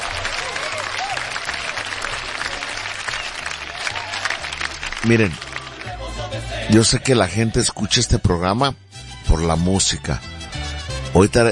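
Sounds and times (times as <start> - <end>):
audience applause: 0.0 - 6.3
speech: 5.0 - 5.5, 6.7 - 10.4, 11.2 - 11.5.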